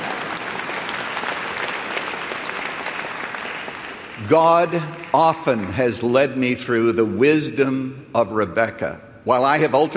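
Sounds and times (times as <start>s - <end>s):
audience applause: 0.0s - 6.1s
speech: 4.2s - 9.9s.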